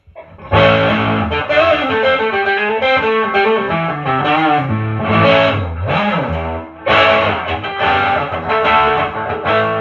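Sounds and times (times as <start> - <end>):
electric guitar through an overdrive pedal playing a gritty riff: 0.3 - 9.8.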